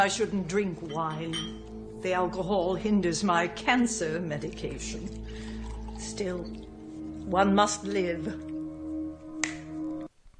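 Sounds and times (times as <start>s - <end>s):
speech: 0.0s - 6.7s, 7.3s - 8.5s
finger snap: 9.4s - 9.8s.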